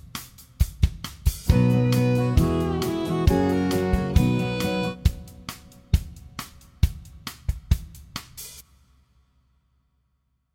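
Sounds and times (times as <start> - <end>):
country music harmony in a major key: 1.5 - 5.6.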